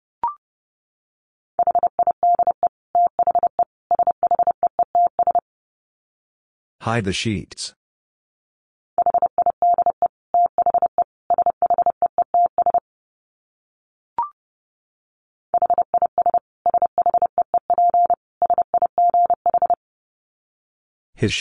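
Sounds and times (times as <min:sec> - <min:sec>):
Morse code tones at 30 words per minute: 0:01.6 - 0:05.4, 0:09.0 - 0:12.8, 0:15.6 - 0:19.8
speech: 0:06.8 - 0:07.8, 0:21.2 - 0:21.3.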